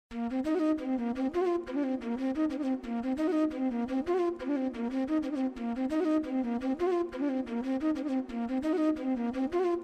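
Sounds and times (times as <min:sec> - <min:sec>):
flute: 0:00.1 - 0:09.8.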